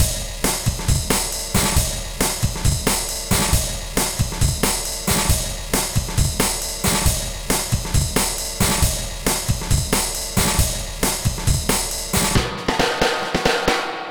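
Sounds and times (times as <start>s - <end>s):
drums: 0.0s - 14.0s.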